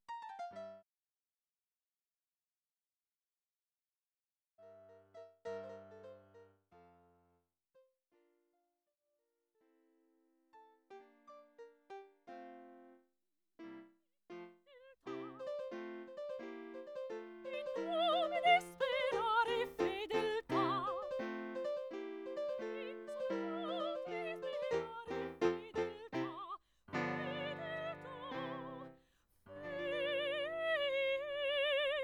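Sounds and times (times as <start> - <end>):
classical music panned both sides: 4.7 - 7.2, 13.6 - 32.0.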